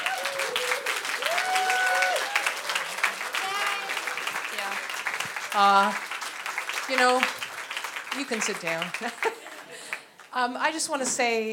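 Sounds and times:
church congregation standing and applauding visiting guests: 0.0 - 10.3
speech: 5.6 - 6.1, 6.9 - 7.4, 8.1 - 9.4, 10.3 - 11.5.

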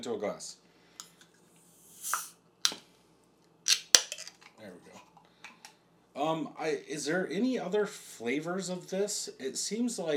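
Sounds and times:
speech: 0.0 - 0.6, 6.2 - 10.1
drink can opening: 1.9 - 2.8, 3.7 - 4.5.

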